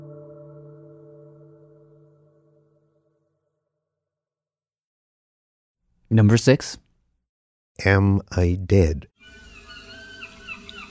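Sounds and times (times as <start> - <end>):
speech: 6.1 - 6.8, 7.8 - 9.1
seagulls calling: 9.2 - 10.9.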